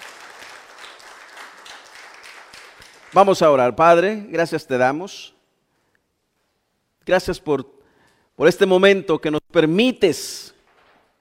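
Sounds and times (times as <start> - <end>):
sustained audience applause: 0.0 - 3.4
speech: 3.1 - 5.4, 7.1 - 7.8, 8.4 - 10.6.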